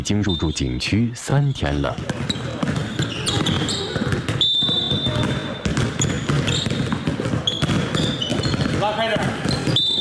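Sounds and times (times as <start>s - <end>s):
speech: 0.0s - 2.4s
basketballs bouncing at a children's basketball summer camp: 1.8s - 9.9s.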